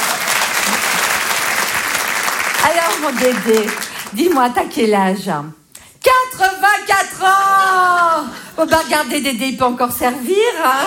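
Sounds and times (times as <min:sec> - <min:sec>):
audience applause: 0:00.0 - 0:04.4
speech: 0:02.6 - 0:10.8.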